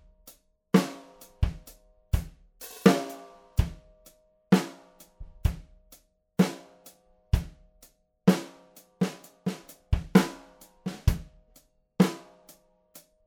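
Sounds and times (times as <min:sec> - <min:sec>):
mixdown snare drum: 0:00.8 - 0:03.7, 0:08.3 - 0:11.2.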